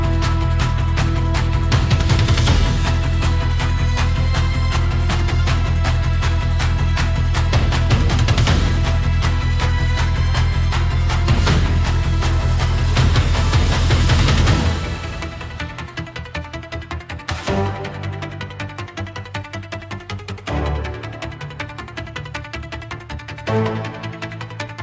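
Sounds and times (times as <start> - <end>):
in-game battle music: 0.0 - 24.8.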